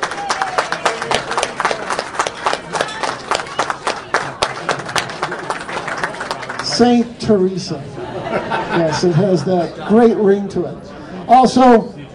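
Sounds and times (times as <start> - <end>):
crowd round of applause: 0.0 - 7.1
speech: 6.8 - 12.0
laughter: 7.8 - 10.4.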